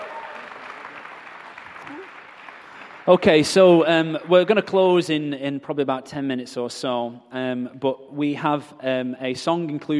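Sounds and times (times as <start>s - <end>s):
audience applause for a band at a live show: 0.0s - 4.6s
speech: 3.1s - 9.9s.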